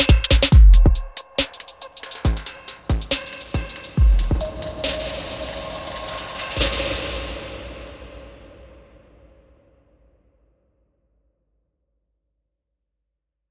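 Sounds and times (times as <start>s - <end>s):
drum loops: 0.0s - 6.7s.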